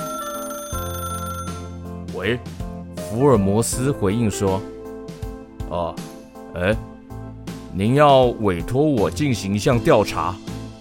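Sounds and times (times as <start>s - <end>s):
office telephone ringing: 0.0s - 2.0s
speech: 2.2s - 4.8s, 5.7s - 6.9s, 7.8s - 10.5s.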